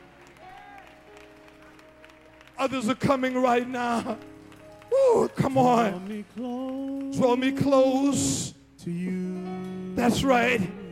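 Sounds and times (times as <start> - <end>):
crowd audience clapping hands: 0.0 - 8.5
speech: 2.6 - 4.3, 5.2 - 10.8.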